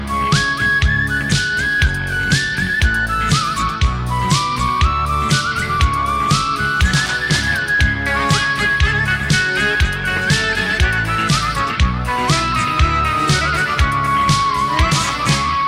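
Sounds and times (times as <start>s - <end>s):
Balkan turbo folk music: 0.0s - 15.6s.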